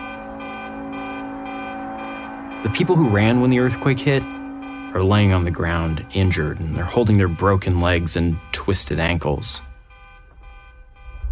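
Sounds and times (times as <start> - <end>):
steady pulsing din: 0.0 - 11.3
sustained blaring car horn: 0.0 - 11.3
speech: 2.6 - 9.7.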